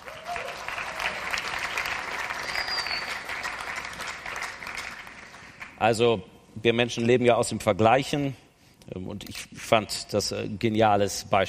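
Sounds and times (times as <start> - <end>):
audience applause: 0.0 - 5.8
faint voice or whistle: 2.4 - 3.2
speech: 5.8 - 11.4.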